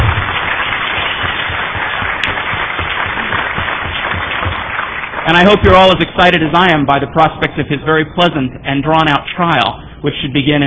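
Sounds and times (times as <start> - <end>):
crowd applauding: 0.0 - 6.3
speech: 5.3 - 10.6.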